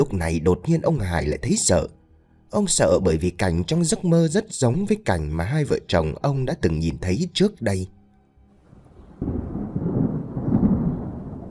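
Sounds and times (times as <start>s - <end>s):
speech: 0.0s - 8.0s
deep rumbling thunder crash announcing a rain shower: 8.7s - 11.4s.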